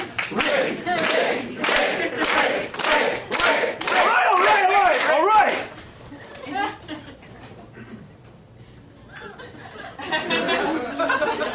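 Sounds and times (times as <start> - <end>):
audience cheering during a magic act: 0.0 - 5.7
laughter: 0.6 - 2.6, 6.1 - 8.1, 9.0 - 11.5.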